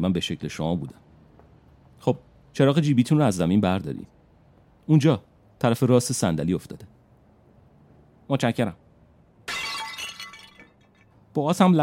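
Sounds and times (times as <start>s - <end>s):
speech: 0.0s - 1.1s, 2.0s - 4.2s, 4.9s - 6.9s, 8.3s - 8.8s, 11.4s - 11.8s
ceramic Greek wine jar shattering: 9.5s - 11.1s.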